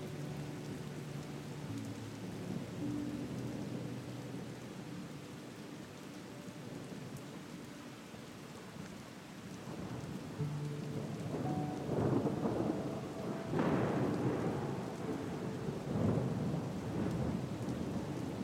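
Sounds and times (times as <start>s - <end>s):
rain hiss: 0.0s - 18.4s
soft sustained music tones: 0.0s - 18.4s
thunder rumbling: 10.9s - 18.4s.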